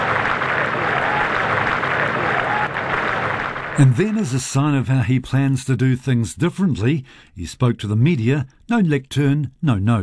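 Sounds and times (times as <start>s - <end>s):
crowd applauding and cheering Andy Burnham arriving at Downing Street: 0.0s - 4.3s
speech: 3.8s - 10.0s.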